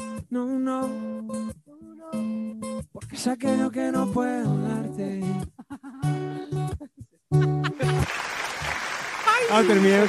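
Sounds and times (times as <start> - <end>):
speech: 0.3 - 1.0, 3.2 - 6.2, 9.5 - 10.0
laughter: 5.5 - 10.0
applause: 7.8 - 10.0.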